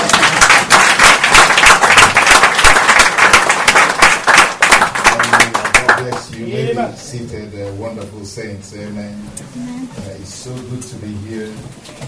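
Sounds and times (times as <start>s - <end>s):
audience clapping: 0.0s - 6.5s
speech: 6.8s - 12.0s.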